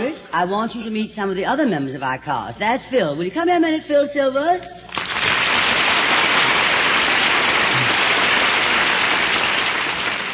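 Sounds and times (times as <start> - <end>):
speech: 0.2 - 4.9
studio audience applause: 4.9 - 10.3.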